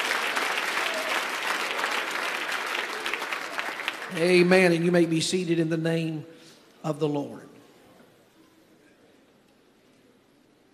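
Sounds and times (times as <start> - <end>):
audience clapping hands: 0.0 - 4.8
speech: 4.1 - 7.5.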